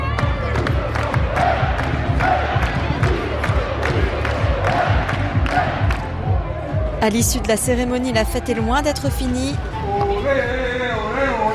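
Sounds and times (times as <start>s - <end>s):
sharp rhythmic claps or thumps: 0.0s - 6.4s
crowd of supporters cheering as a trophy appears on stage: 0.0s - 11.5s
speech: 7.0s - 10.9s.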